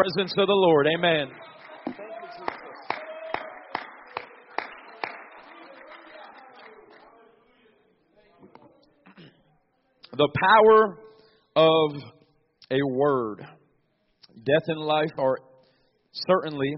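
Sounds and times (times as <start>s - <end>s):
speech: 0.0s - 1.6s, 10.2s - 11.0s, 11.6s - 13.6s, 14.4s - 15.5s, 16.2s - 16.7s
audience clapping hands: 0.0s - 7.4s.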